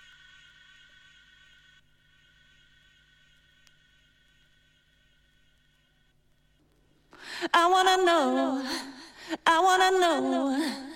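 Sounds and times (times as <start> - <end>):
a cappella singing: 7.4 - 10.9.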